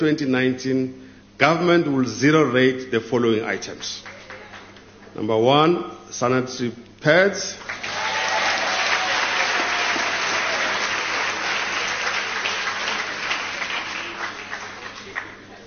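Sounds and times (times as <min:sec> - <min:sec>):
speech: 0:00.0 - 0:04.2, 0:05.2 - 0:07.8
audience applause: 0:07.6 - 0:15.6.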